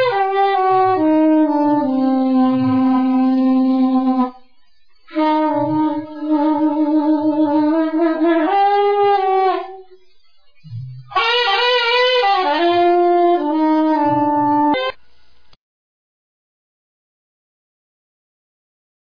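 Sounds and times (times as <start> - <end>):
saxophone: 0.0 - 4.4, 5.1 - 10.0, 10.7 - 15.0.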